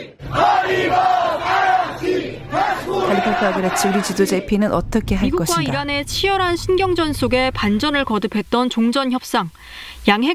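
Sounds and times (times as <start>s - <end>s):
large protest crowd chanting in unison: 0.0s - 8.4s
speech: 3.1s - 10.3s.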